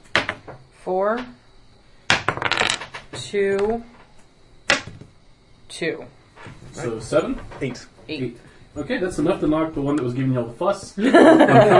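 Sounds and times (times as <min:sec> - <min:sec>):
speech: 0:00.8 - 0:01.4, 0:03.2 - 0:04.0, 0:05.7 - 0:11.7
three dice being rolled: 0:02.1 - 0:03.7
laughter: 0:11.0 - 0:11.7.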